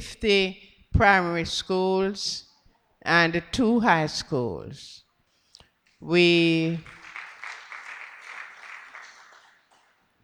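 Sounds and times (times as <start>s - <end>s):
speech: 0.0s - 5.0s, 6.0s - 7.0s
audience clapping: 6.8s - 10.2s.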